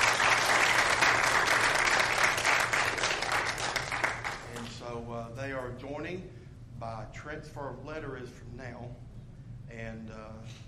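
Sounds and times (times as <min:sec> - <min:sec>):
audience applause: 0:00.0 - 0:04.6
speech: 0:05.7 - 0:09.1, 0:09.7 - 0:10.6.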